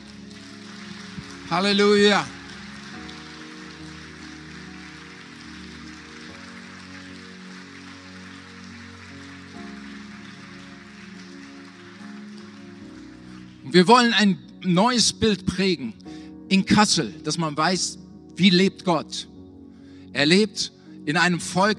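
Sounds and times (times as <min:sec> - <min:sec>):
audience applause: 0:00.0 - 0:13.6
speech: 0:01.5 - 0:02.4, 0:13.7 - 0:19.3, 0:20.1 - 0:21.7.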